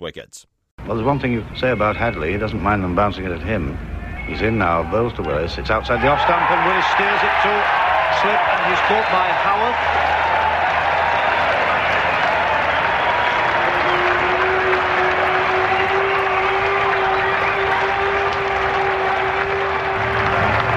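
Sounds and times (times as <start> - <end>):
speech: 0.0 - 10.2
long applause from large cricket crowd: 5.9 - 20.7.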